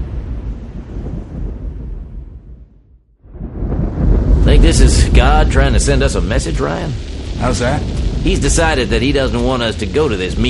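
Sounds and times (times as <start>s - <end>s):
rolling thunder from a storm: 0.0s - 10.4s
speech: 4.6s - 10.4s.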